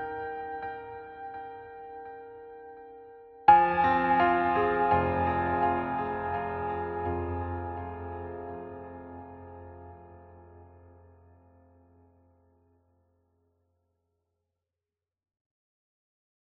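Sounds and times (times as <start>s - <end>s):
solo piano version: 0.0s - 12.5s.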